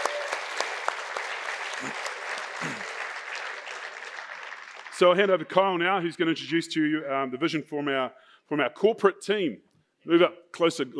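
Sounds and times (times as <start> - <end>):
audience clapping: 0.0 - 5.5
speech: 1.8 - 2.8, 5.0 - 10.9.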